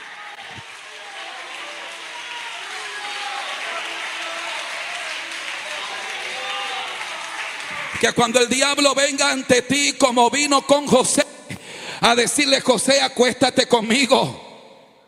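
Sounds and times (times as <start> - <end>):
audience applauding: 0.0 - 9.6
speech: 8.0 - 11.3, 12.0 - 14.4.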